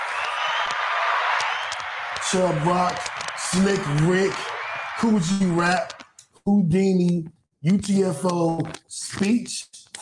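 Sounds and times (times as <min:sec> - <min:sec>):
crowd applauding: 0:00.0 - 0:06.1
speech: 0:02.2 - 0:09.8.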